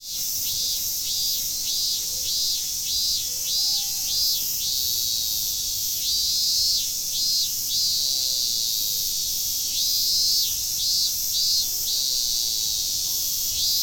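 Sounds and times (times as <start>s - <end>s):
chorus of several cicadas buzzing and throbbing: 0.0s - 13.8s.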